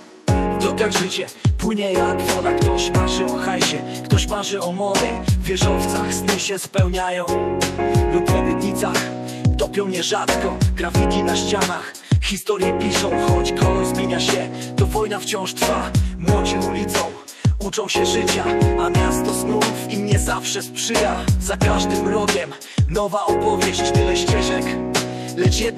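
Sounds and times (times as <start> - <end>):
hip hop vocals: 0.3 - 25.7.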